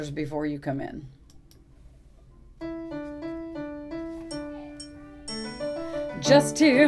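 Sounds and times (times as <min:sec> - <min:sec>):
donkey music: 0:03.9 - 0:06.7.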